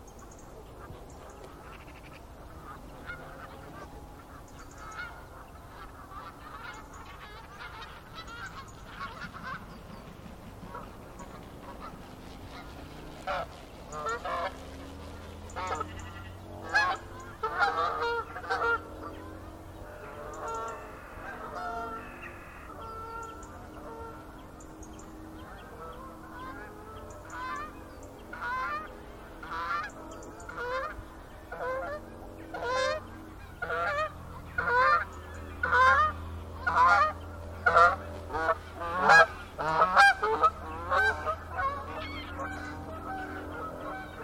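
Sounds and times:
geese honking in nasal calls: 0.0 - 44.2
low rumbling hum: 0.0 - 44.2.

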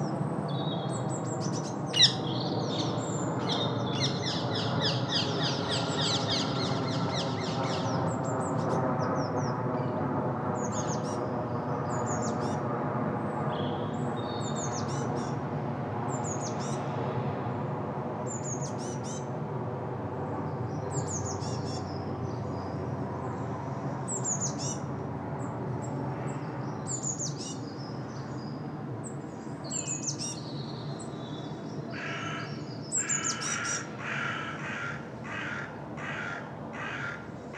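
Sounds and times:
birds singing on a bright winter morning in south east London: 0.0 - 9.6, 10.6 - 11.3, 11.9 - 12.6, 13.6 - 15.4, 20.4 - 37.5
planes passing over south east London heading to Heathrow airport: 0.0 - 37.5.

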